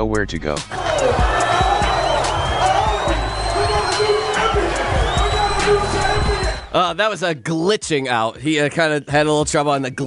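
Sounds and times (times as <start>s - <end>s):
speech: 0.0s - 1.4s, 5.6s - 10.0s
big crowd cheering and whooping: 0.7s - 6.8s
whistles: 0.8s - 6.8s.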